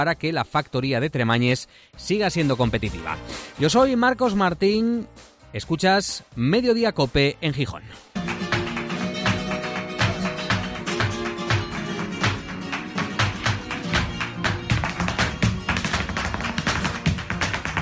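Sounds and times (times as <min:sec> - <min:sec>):
speech: 0:00.0 - 0:08.4
flamenco heel tapping: 0:08.2 - 0:17.7.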